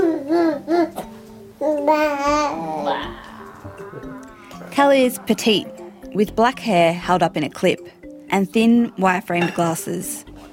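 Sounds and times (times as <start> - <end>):
baby babbling while playing in high chair: 0.0 - 4.6
speech: 4.8 - 10.3.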